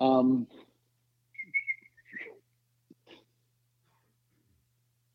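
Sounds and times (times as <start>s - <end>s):
speech: 0.2s - 0.6s
unsuccessful attempt at whistling: 1.4s - 2.4s.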